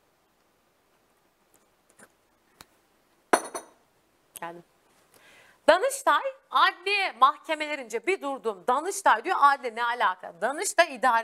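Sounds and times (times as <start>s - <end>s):
tea glass clinking while taking a sip: 3.4s - 3.8s
speech: 4.4s - 4.8s, 5.7s - 11.2s.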